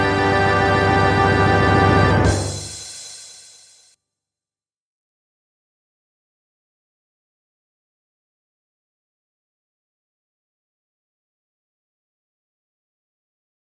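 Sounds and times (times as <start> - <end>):
national anthem music: 0.0 - 3.3.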